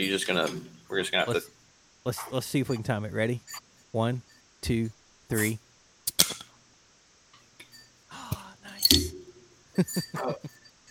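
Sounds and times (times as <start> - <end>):
speech: 0.0 - 5.6, 9.8 - 10.5
bottle cap clattering onto a hard floor: 8.8 - 9.3
bottle caps being pried off: 8.8 - 9.4.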